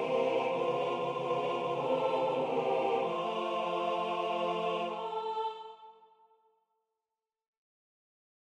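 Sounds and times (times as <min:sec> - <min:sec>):
SATB choir singing a spiritual: 0:00.0 - 0:06.2.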